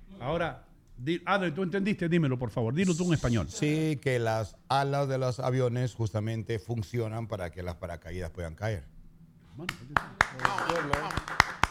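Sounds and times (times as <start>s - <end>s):
speech: 0.2s - 9.0s, 9.6s - 11.4s
single person clapping hands: 9.7s - 11.6s.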